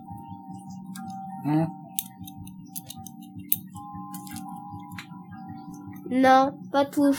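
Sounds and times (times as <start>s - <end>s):
watch ticking: 0.1s - 5.1s
speech: 1.4s - 1.8s, 6.1s - 7.1s.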